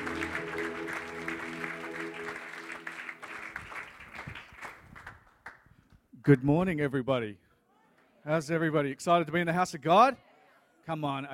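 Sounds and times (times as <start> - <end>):
church congregation applauding to welcome a pastor at a morning service: 0.0 - 5.7
speech: 6.3 - 7.4, 8.2 - 11.3.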